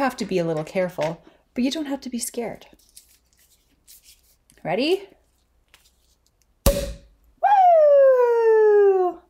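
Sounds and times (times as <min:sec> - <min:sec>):
speech: 0:00.0 - 0:02.9, 0:04.6 - 0:05.2
champagne bottle cork popping as it is opened with a twist: 0:06.6 - 0:07.2
person cheering: 0:07.4 - 0:09.2.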